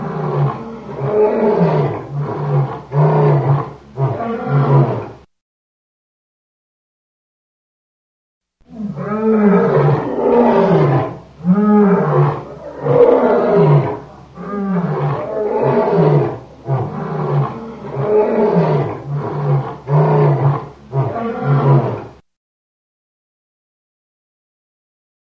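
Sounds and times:
lion roaring grunts: 0.0 - 5.2, 8.7 - 22.1.

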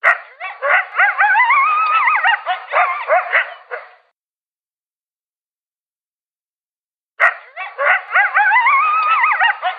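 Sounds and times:
coyote yipping and howling: 0.0 - 4.0, 7.2 - 9.7.

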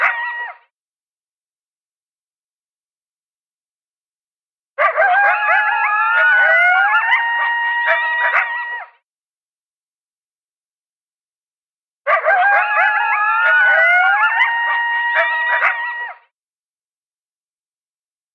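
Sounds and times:
coyotes yipping and howling: 0.0 - 0.6, 4.8 - 9.0, 12.1 - 16.3.

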